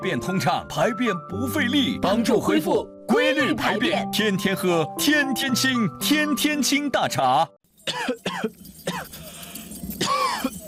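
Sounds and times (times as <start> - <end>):
speech: 0.0 - 9.2
coughing: 7.8 - 9.3, 9.9 - 10.6.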